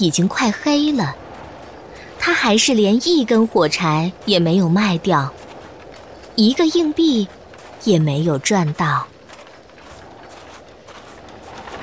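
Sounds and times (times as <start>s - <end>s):
speech: 0.0s - 1.2s, 2.4s - 5.4s, 6.4s - 9.1s
horse hooves clip-clopping: 0.5s - 11.8s.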